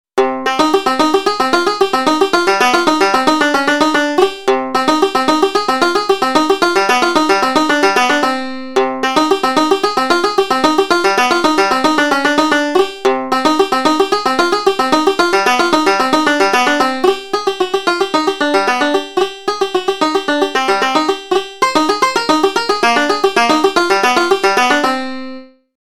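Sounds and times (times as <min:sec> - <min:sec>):
jig tune: 0:00.2 - 0:25.6.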